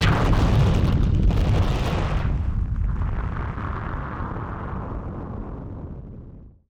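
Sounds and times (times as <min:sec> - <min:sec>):
firework sound effect: 0:00.0 - 0:06.6.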